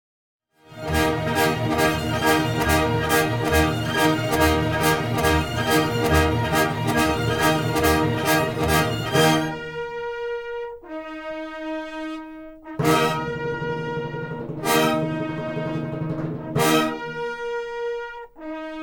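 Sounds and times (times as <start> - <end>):
orchestral music recorded anechoic: 0.7 - 10.2, 12.8 - 17.9.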